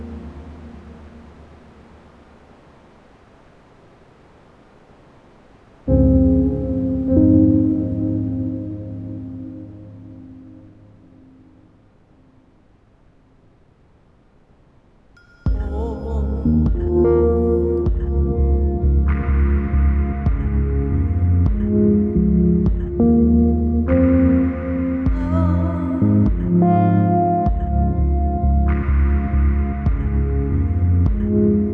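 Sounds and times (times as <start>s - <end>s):
music: 5.9s - 11.4s, 15.2s - 31.7s.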